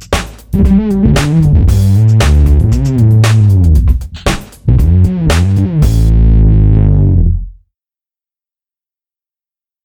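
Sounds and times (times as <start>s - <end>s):
ME-20B guitar effects patch: 0.0s - 7.5s.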